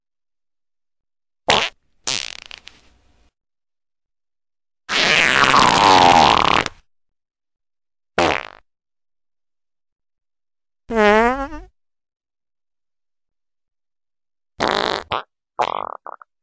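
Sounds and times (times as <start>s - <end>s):
loud farts: 1.5s - 2.7s, 4.9s - 6.8s, 8.2s - 8.7s, 10.9s - 11.7s, 14.6s - 16.3s.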